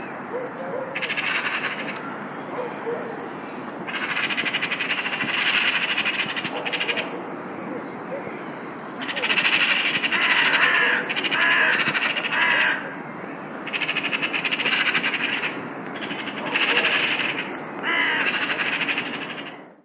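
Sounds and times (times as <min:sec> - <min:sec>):
magpie calling: 0:00.8 - 0:07.2, 0:09.0 - 0:13.0, 0:13.6 - 0:19.7
crow cawing: 0:01.0 - 0:02.0, 0:03.9 - 0:07.1, 0:09.0 - 0:13.0, 0:13.7 - 0:19.6.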